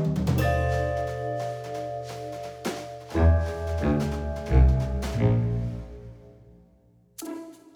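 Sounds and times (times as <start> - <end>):
blues music: 0.0 - 6.1.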